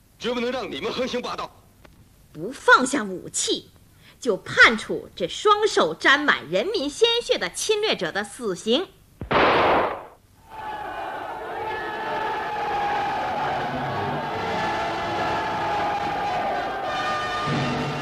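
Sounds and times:
speech: 0.2 - 1.6, 2.4 - 9.6
crowd cheering to celebrate battle victory: 10.4 - 18.0.

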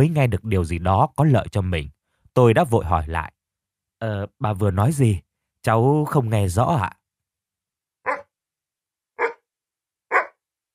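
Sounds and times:
speech: 0.0 - 3.4, 4.0 - 7.0
white-furred blue-eyed dog barking loudly in a room: 8.1 - 8.3, 9.2 - 9.5, 10.1 - 10.4.

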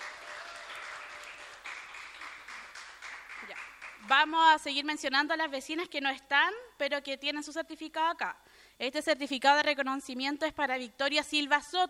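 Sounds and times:
crowd applauding two women photographers: 0.0 - 4.0
speech: 4.1 - 11.8.

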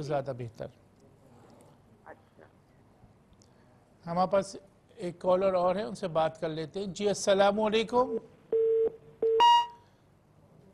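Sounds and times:
speech: 0.0 - 0.9, 4.0 - 8.3
telephone line tone as a caller's call drops: 8.6 - 9.8.

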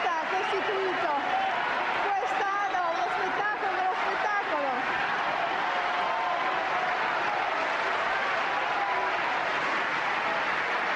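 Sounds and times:
long ovation from concert audience: 0.0 - 10.9.

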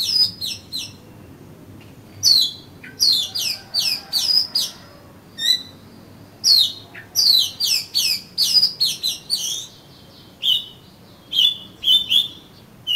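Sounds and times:
Oriental magpie-robin singing: 0.0 - 12.9.

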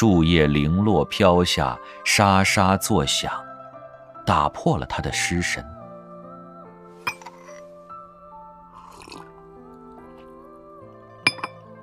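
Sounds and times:
speech: 0.0 - 3.5, 4.3 - 5.8
teacup clinking as warm tea is sipped: 7.0 - 7.6, 8.8 - 9.3, 11.3 - 11.6.

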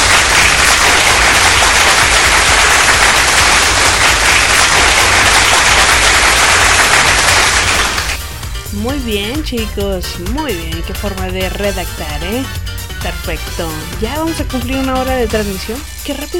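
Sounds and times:
crowd applause: 0.0 - 8.2
speech: 9.0 - 16.3.

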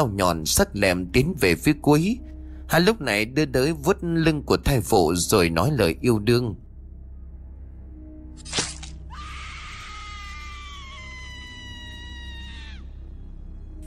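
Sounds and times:
speech: 0.0 - 6.6
terrified woman's scream: 9.1 - 12.9.

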